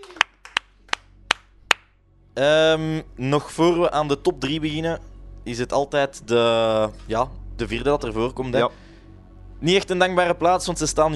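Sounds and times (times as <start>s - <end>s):
applause: 0.0s - 1.8s
speech: 2.4s - 8.8s, 9.6s - 11.1s.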